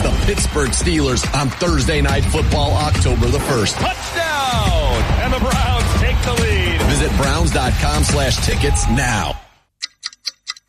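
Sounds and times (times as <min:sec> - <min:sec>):
speech: 0:00.3 - 0:09.4
clock ticking: 0:09.7 - 0:10.6.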